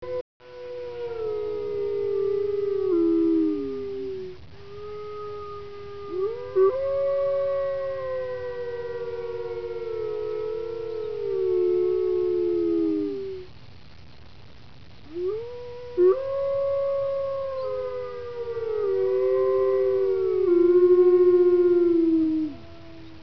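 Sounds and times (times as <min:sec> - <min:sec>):
wolf howling: 0:00.0 - 0:13.5, 0:15.1 - 0:23.2.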